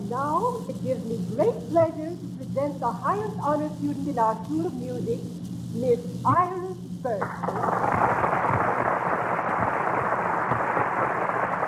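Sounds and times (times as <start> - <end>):
speech: 0.1 - 8.2
crowd applauding loudly: 7.2 - 11.6.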